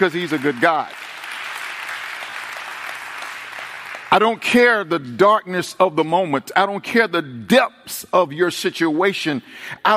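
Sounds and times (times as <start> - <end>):
speech: 0.0 - 1.0, 4.2 - 9.9
congregation clapping hands in praise at a church service: 0.0 - 5.6.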